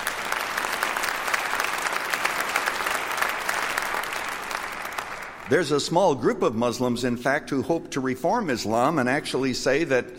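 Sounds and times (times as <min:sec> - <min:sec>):
audience clapping: 0:00.0 - 0:05.8
speech: 0:05.5 - 0:10.1.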